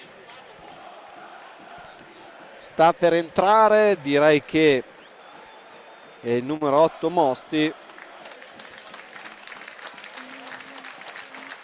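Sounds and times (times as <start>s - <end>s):
crowd applause at a Modena football match as a player leaves the field: 0.0s - 2.6s, 7.4s - 11.6s
speech: 2.6s - 4.9s, 6.2s - 7.8s.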